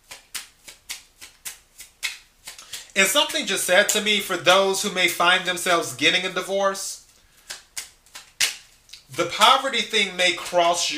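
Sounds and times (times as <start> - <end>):
Divine Doors tarot cards being handled and drawn: 0.0 - 4.6, 7.0 - 10.9
speech: 3.0 - 7.0, 9.2 - 10.9.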